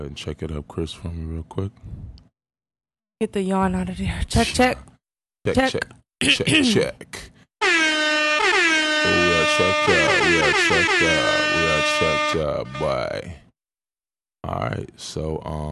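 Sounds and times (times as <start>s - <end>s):
speech: 0.0s - 2.2s, 3.2s - 7.9s, 9.0s - 13.4s, 14.4s - 15.6s
air horn sound effect: 7.6s - 13.3s.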